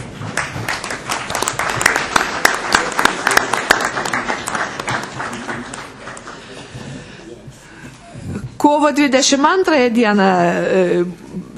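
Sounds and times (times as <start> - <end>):
audience applauding at a council meeting: 0.0 - 7.1
speech: 8.7 - 11.2.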